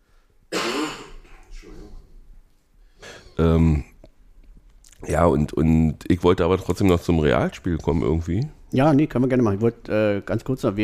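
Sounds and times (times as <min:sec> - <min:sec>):
cough: 0:00.5 - 0:01.5
speech: 0:03.4 - 0:03.9, 0:05.0 - 0:10.8.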